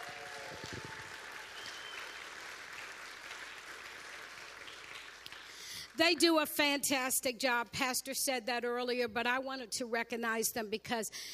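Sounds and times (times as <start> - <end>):
audience applause for family: 0.0 - 5.7
speech: 6.0 - 11.3.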